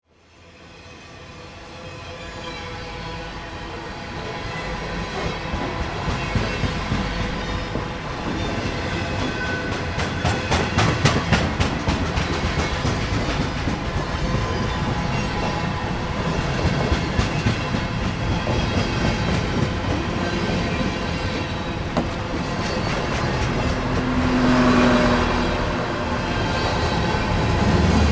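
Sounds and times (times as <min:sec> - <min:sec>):
freight train in winter: 0:00.0 - 0:28.1.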